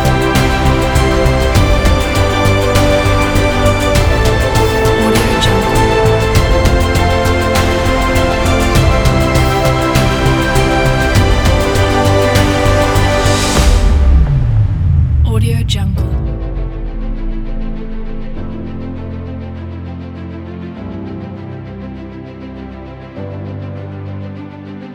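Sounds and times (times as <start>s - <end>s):
inspiring cinematic epic orchestral music: 0.0s - 24.9s.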